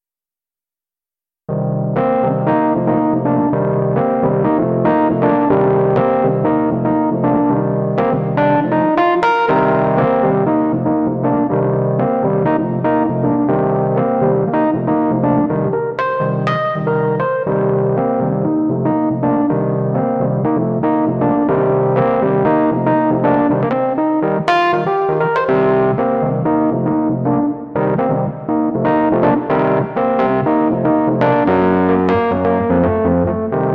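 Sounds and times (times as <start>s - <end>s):
jazz music: 1.9s - 33.7s.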